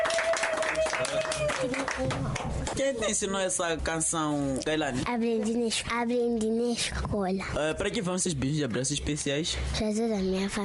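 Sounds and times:
applause for a child: 0:00.0 - 0:02.8
speech: 0:01.0 - 0:10.6.

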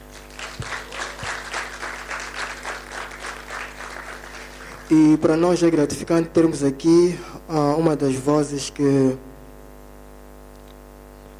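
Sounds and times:
audience applause: 0:00.0 - 0:05.2
speech: 0:04.9 - 0:09.3.

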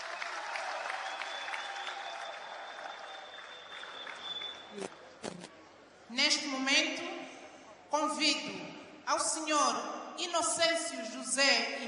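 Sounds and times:
audience applause: 0:00.0 - 0:05.4
speech: 0:04.8 - 0:05.0, 0:06.1 - 0:07.2, 0:07.9 - 0:11.8.

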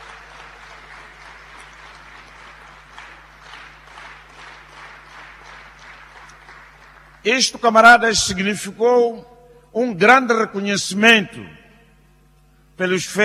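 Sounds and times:
crowd applause: 0:00.0 - 0:07.5
faint low hum: 0:00.0 - 0:13.2
speech: 0:07.2 - 0:11.6, 0:12.8 - 0:13.2.

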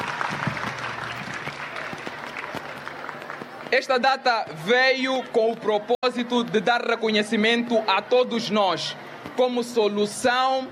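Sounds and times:
round of applause: 0:00.0 - 0:03.7
speech: 0:03.7 - 0:10.6.

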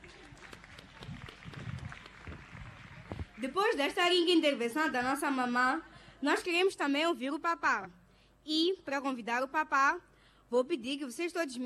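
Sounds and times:
audience applause: 0:00.0 - 0:03.4
speech: 0:03.4 - 0:11.6.

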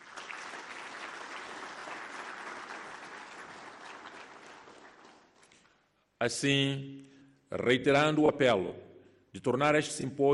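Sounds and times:
audience applause: 0:00.0 - 0:05.6
speech: 0:06.2 - 0:10.3.

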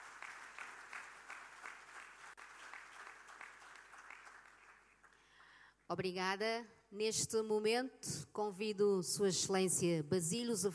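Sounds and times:
audience applause: 0:00.0 - 0:05.1
speech: 0:05.9 - 0:10.7.

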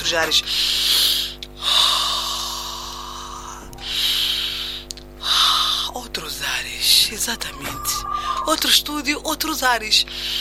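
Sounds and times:
speech: 0:00.1 - 0:01.9, 0:06.1 - 0:10.4
person breathing loudly into a microphone in a studio: 0:00.4 - 0:06.0, 0:08.0 - 0:08.5, 0:10.1 - 0:10.4.

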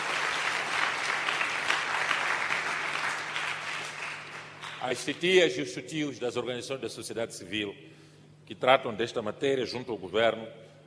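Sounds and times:
audience applause: 0:00.0 - 0:05.0
speech: 0:04.8 - 0:07.9, 0:08.5 - 0:10.7.

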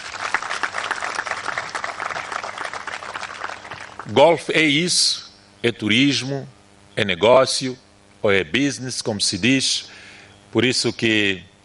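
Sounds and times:
audience applause: 0:00.0 - 0:04.2
speech: 0:04.1 - 0:11.6.

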